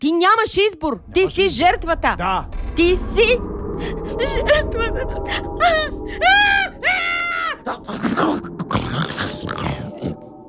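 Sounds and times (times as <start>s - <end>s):
speech: 0.0s - 7.0s
person vocally imitating a lion's roar: 7.8s - 10.2s.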